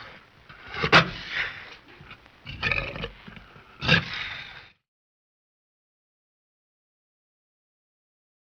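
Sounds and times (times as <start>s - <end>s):
tiger growling: 0.0s - 4.8s.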